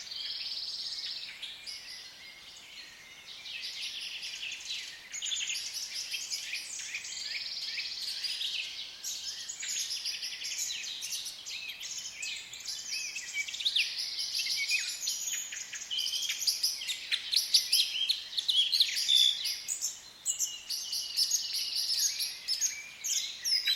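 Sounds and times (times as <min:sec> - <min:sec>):
birds singing in the woods: 0:00.0 - 0:23.7.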